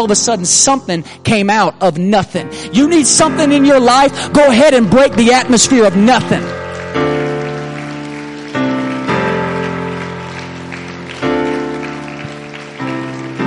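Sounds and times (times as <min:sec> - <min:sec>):
speech: 0:00.0 - 0:07.1
audience clapping hands: 0:04.3 - 0:13.4.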